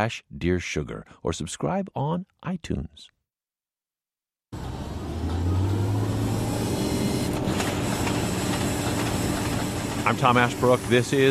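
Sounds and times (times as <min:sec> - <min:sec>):
speech: 0:00.0 - 0:03.1, 0:10.1 - 0:11.2
oil rig operating in the North Dakota oil fields: 0:04.6 - 0:11.2.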